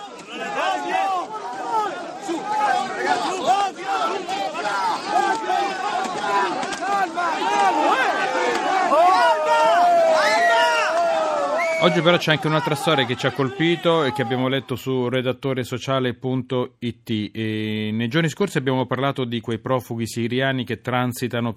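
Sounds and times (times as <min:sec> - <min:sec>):
protest crowd shouting and chanting outside warehouse gates: 0:00.0 - 0:14.9
speech: 0:11.8 - 0:21.5.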